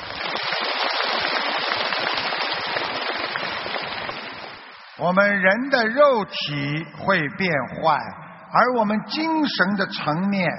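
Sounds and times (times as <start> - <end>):
audience applause: 0.0 - 4.8
speech: 5.0 - 10.5.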